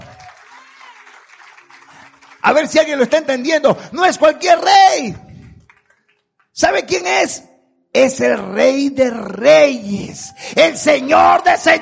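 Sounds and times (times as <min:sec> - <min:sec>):
audience applauding: 0:00.0 - 0:03.6, 0:05.4 - 0:06.3
speech: 0:02.4 - 0:05.2, 0:06.6 - 0:11.8.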